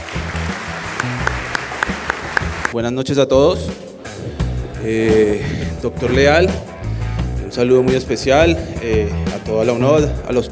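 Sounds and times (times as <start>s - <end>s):
audience applause at an awards ceremony honouring a Colombian sports executive: 0.0s - 2.8s
speech: 2.8s - 3.8s, 4.8s - 6.7s, 7.5s - 10.4s.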